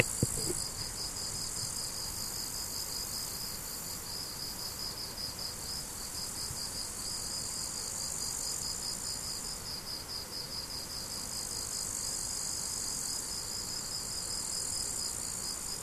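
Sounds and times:
crickets chirping: 0:00.0 - 0:15.8.

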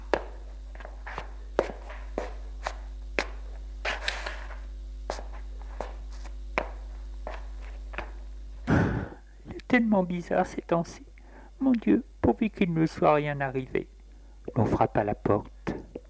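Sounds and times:
nervous footsteps pacing in living room: 0:00.0 - 0:08.3
low constant hum: 0:00.0 - 0:16.0
speech: 0:09.7 - 0:13.9, 0:14.6 - 0:15.5.

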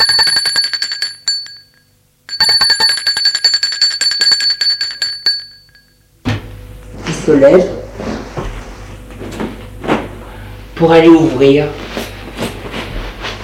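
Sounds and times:
doorbell ringing: 0:00.0 - 0:06.1
speech: 0:07.3 - 0:07.8, 0:10.8 - 0:11.9.

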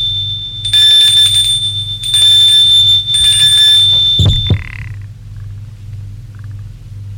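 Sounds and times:
electric doorbell ringing: 0:00.0 - 0:04.8
low knocking thuds: 0:03.2 - 0:04.8.

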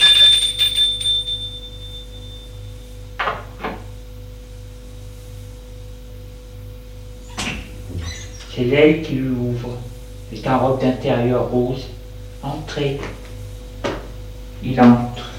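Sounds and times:
doorbell ringing at a home: 0:00.0 - 0:02.8
low pulsing hum: 0:00.0 - 0:15.3
speech: 0:08.6 - 0:13.2, 0:14.6 - 0:15.3.

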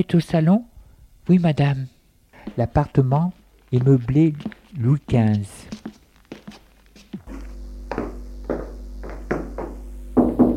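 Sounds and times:
speech: 0:00.0 - 0:00.7, 0:01.3 - 0:06.0
knocking on a door: 0:09.3 - 0:10.5.

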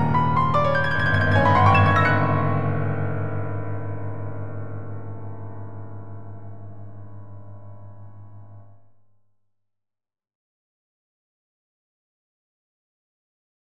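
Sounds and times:
fast loud piano playing: 0:00.0 - 0:05.5.

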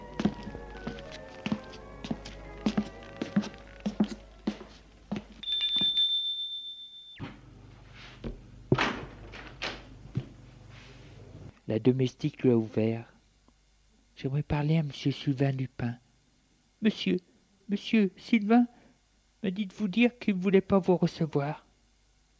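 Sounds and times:
footsteps thudding: 0:00.0 - 0:06.0
doorbell ringing at a house: 0:05.4 - 0:07.2
speech: 0:11.8 - 0:13.1, 0:14.2 - 0:16.0, 0:16.8 - 0:18.8, 0:19.4 - 0:21.6.

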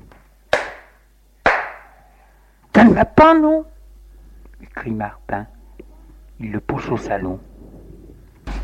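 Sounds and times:
slaps to the face: 0:00.5 - 0:01.9
speech: 0:02.8 - 0:03.7, 0:04.8 - 0:05.6, 0:06.4 - 0:07.5.

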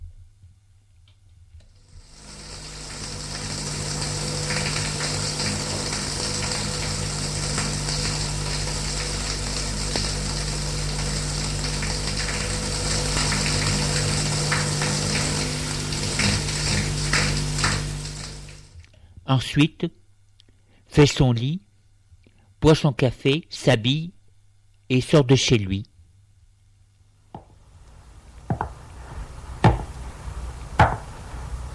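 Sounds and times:
shower running: 0:01.8 - 0:18.8, 0:27.6 - 0:31.7
speech: 0:19.3 - 0:20.0, 0:21.0 - 0:21.7, 0:22.6 - 0:24.2, 0:24.9 - 0:25.9.

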